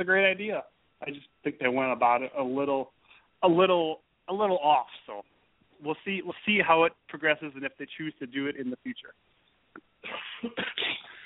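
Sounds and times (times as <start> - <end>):
speech: 0.0 - 9.3, 10.0 - 11.0
person coughing on the line: 10.0 - 11.2.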